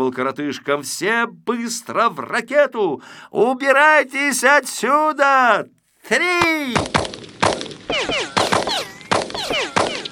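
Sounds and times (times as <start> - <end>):
speech: 0.0 - 7.1
police rifle gunshots fired at a rocket: 6.7 - 10.1.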